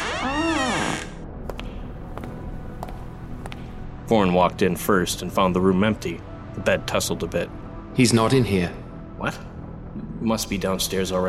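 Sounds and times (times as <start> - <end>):
door creaking open: 0.0 - 1.2
speech: 4.1 - 9.5, 10.2 - 11.2.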